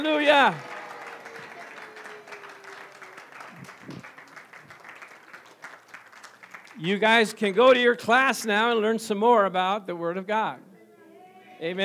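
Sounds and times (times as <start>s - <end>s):
speech: 0.0s - 0.7s, 6.8s - 10.7s, 11.6s - 11.8s
audience applause: 0.0s - 6.8s.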